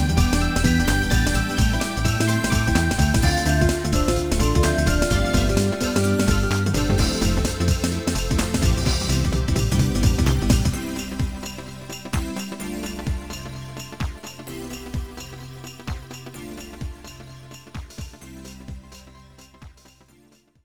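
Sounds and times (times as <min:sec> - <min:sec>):
happy music: 0:00.0 - 0:14.9.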